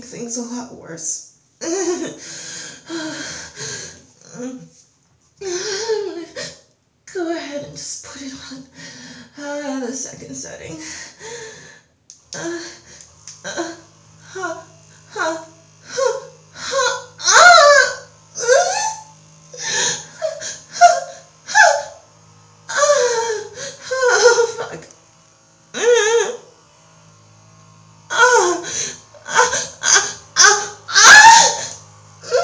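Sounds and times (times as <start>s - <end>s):
loud Hitachi vibrator buzzing: 1.6s - 4.6s, 7.4s - 32.4s
woman vocalizing: 2.8s - 4.7s, 5.4s - 6.6s, 12.4s - 22.0s, 22.7s - 24.9s, 25.8s - 26.4s, 28.1s - 32.4s.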